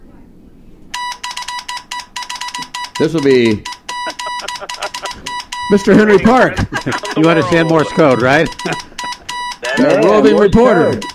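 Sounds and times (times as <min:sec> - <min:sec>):
telephone ringing electronically: 0:01.0 - 0:11.1
speech: 0:03.0 - 0:03.7, 0:05.7 - 0:08.8, 0:09.8 - 0:11.1
laughter: 0:04.0 - 0:11.0.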